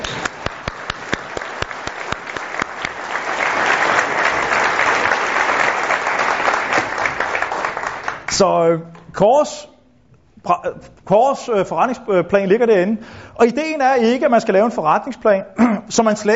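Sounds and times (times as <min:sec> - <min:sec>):
audience applause: 0:00.0 - 0:08.3
speech: 0:08.4 - 0:09.7, 0:10.4 - 0:16.3.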